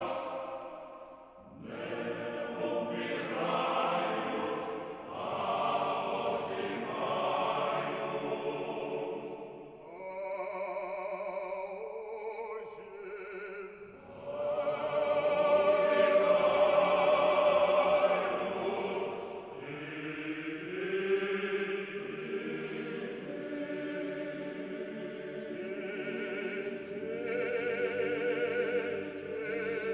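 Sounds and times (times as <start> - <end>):
Byzantine male choir singing: 0.0 - 29.9.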